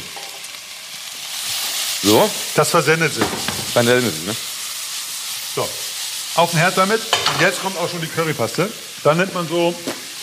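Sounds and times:
garlic sizzling in a hot pan: 0.0s - 10.2s
speech: 2.0s - 4.5s, 6.4s - 10.2s.

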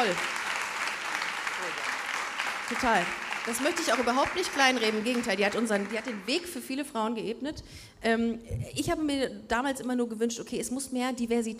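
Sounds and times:
speech: 0.0s - 0.4s, 2.7s - 11.5s
audience applause: 0.0s - 6.7s.

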